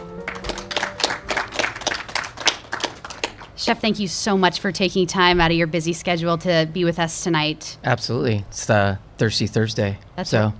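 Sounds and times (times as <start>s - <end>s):
audience applause welcoming a guest chef: 0.0s - 3.6s
speech: 3.6s - 10.5s.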